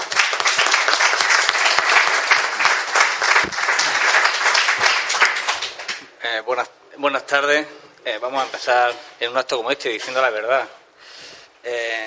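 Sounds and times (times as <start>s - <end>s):
audience applause: 0.0s - 6.0s
speech: 6.4s - 10.8s, 11.6s - 12.0s.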